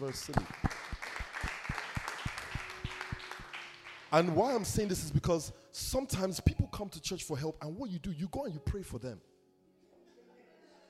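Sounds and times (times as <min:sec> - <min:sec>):
speech: 0:00.0 - 0:00.8, 0:04.1 - 0:09.3
church audience clapping: 0:00.0 - 0:04.9.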